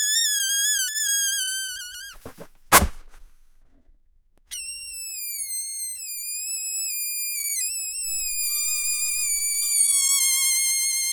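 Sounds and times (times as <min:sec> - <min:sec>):
cluster of balloons: 0:00.2 - 0:03.8, 0:08.1 - 0:11.0.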